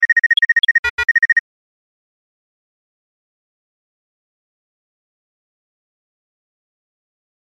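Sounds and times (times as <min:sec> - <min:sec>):
email notification sound: 0:00.0 - 0:01.4.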